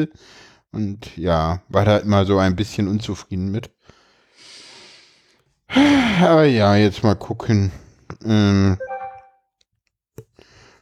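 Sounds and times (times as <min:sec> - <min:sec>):
speech: 0:00.0 - 0:03.8, 0:05.7 - 0:08.9
smartphone notification sound: 0:08.8 - 0:09.4.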